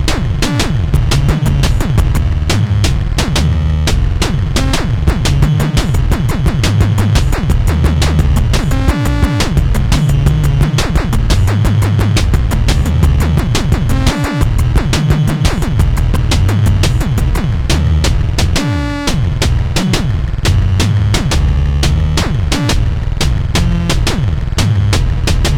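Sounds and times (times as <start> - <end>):
808 drum machine beat: 0.0 - 25.5.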